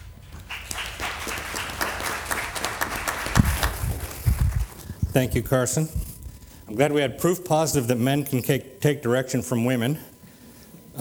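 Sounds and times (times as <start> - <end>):
audience applause welcoming a speaker: 0.0 - 4.9
speech: 5.2 - 6.0, 6.7 - 10.1.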